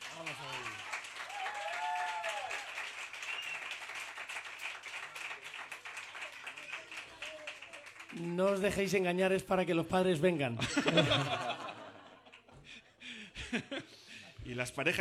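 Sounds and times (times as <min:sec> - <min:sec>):
audience applause: 0:00.0 - 0:09.0
speech: 0:00.2 - 0:00.8, 0:08.2 - 0:11.6, 0:14.5 - 0:15.0
laughter: 0:10.6 - 0:14.5.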